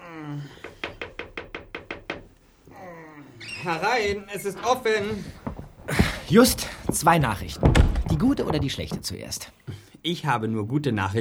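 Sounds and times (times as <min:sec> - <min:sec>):
knocking on a door: 0:00.7 - 0:02.4, 0:05.3 - 0:09.1
speech: 0:03.6 - 0:11.1.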